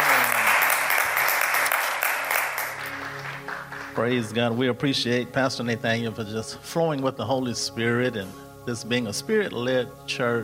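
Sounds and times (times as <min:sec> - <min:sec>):
audience applause: 0:00.0 - 0:04.0
speech: 0:04.0 - 0:10.4.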